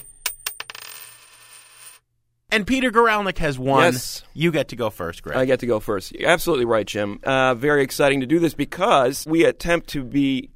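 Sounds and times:
coin being tossed and landing: 0.0 - 2.0
speech: 2.6 - 10.5.

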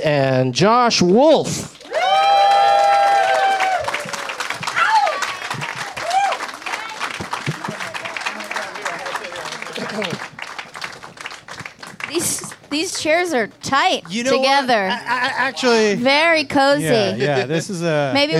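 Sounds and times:
speech: 0.0 - 1.8, 13.0 - 18.3
crowd applause: 1.8 - 14.3
whoops and whistled cheers: 1.9 - 6.4
laughter: 7.3 - 10.4, 16.8 - 18.3.

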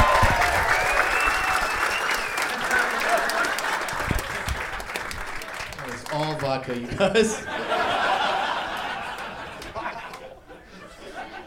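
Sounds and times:
cheers: 0.0 - 5.9
crowd applause: 0.0 - 11.4
laughter: 2.2 - 5.0, 6.7 - 11.4
speech: 6.5 - 7.8.

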